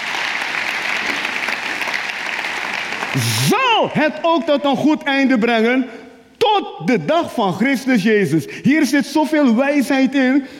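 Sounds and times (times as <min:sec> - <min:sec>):
audience applauding: 0:00.0 - 0:03.8
speech: 0:03.1 - 0:10.5.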